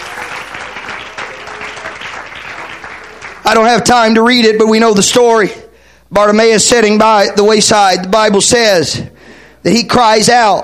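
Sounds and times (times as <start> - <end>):
audience clapping hands: 0.0 - 4.2
speech: 3.5 - 10.6.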